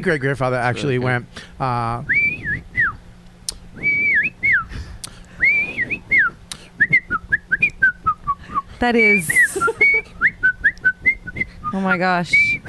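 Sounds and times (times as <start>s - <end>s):
speech: 0.0s - 2.2s, 8.8s - 9.7s, 11.7s - 12.6s
person whistling a jaunty march melody: 2.1s - 3.0s, 3.8s - 4.7s, 5.4s - 12.6s.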